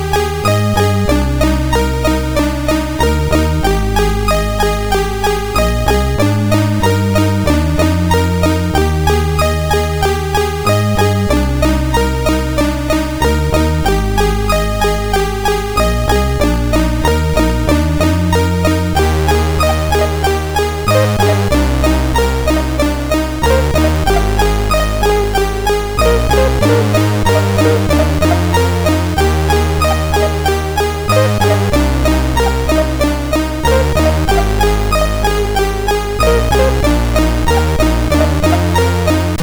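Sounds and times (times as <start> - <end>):
MOS 6581R3 chiptune synth sound: 0.0 - 39.4.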